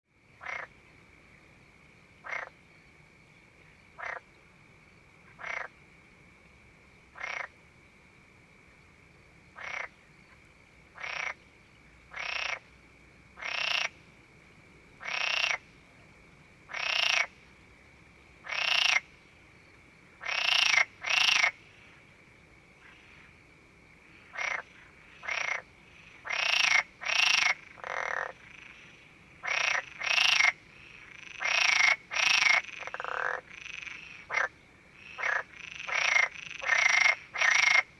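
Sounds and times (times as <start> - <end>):
frog croaking: 0.4 - 0.9, 2.2 - 2.6, 3.9 - 4.4, 5.2 - 5.8, 7.1 - 7.6, 9.5 - 11.5, 12.1 - 12.8, 13.4 - 14.0, 15.0 - 15.7, 16.7 - 17.4, 18.4 - 19.1, 20.2 - 22.1, 23.9 - 37.9.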